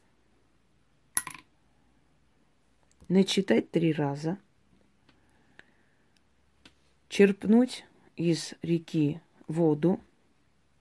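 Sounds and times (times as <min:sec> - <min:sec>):
coin thrown down: 0:01.2 - 0:01.4
speech: 0:03.1 - 0:04.4, 0:07.2 - 0:10.1.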